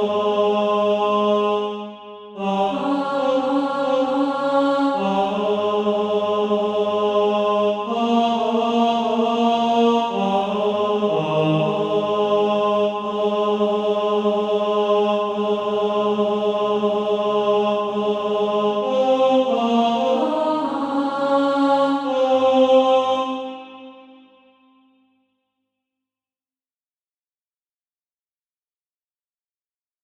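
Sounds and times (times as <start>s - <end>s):
tenor singing: 0.0s - 24.0s.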